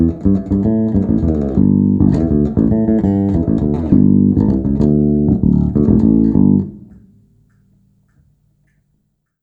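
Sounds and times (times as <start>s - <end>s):
fingered bass guitar: 0.0s - 7.2s.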